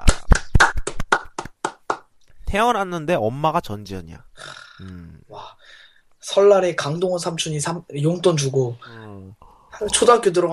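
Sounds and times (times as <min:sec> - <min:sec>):
celebratory hand clapping: 0:00.0 - 0:02.1
speech: 0:02.5 - 0:10.5.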